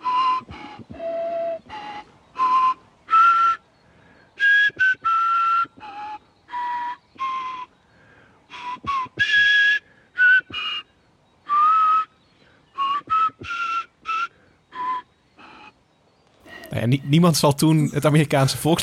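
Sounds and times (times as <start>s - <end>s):
replica flute playing a halting tune: 0.0s - 3.7s, 4.4s - 7.8s, 8.5s - 15.8s
speech: 16.9s - 18.8s.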